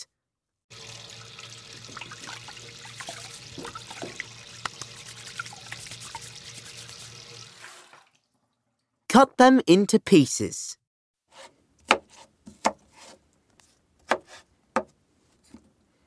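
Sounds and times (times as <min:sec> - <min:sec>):
running tap water washing potatoes: 0:00.7 - 0:08.3
speech: 0:09.2 - 0:10.8.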